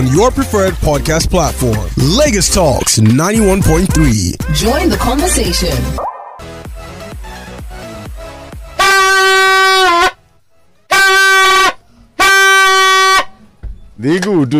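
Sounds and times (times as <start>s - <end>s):
speech: 0.0s - 6.0s, 14.0s - 14.5s
vuvuzela being blown: 8.7s - 10.2s, 10.9s - 13.4s.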